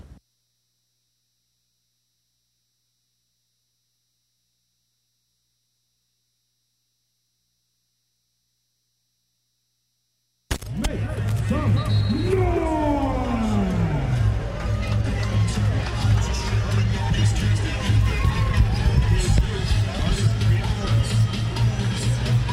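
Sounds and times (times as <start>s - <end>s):
crowd murmur at Kagan Stadium during a Stanford women's soccer match: 10.7s - 22.5s
scattered louder calls from the crowd: 10.8s - 22.5s
low humming undertone: 11.1s - 20.4s.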